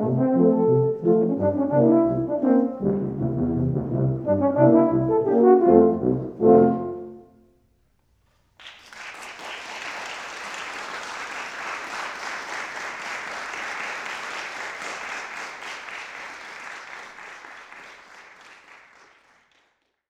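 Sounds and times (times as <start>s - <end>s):
ragtime music: 0.0s - 7.4s.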